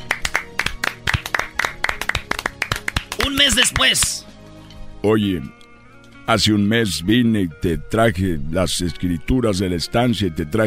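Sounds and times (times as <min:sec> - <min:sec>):
applause from a small group: 0:00.0 - 0:04.2
speech: 0:03.3 - 0:04.3, 0:05.0 - 0:05.6, 0:06.3 - 0:10.6.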